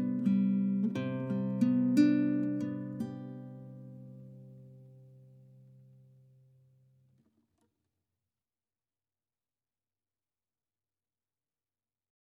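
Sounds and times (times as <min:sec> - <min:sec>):
guitar tune: 0:00.0 - 0:06.6.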